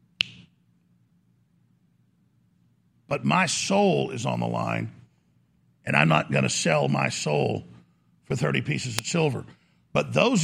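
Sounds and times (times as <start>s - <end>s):
faint low hum: 0.0s - 10.4s
finger snap: 0.2s - 0.6s
speech: 3.1s - 5.0s, 5.8s - 10.4s.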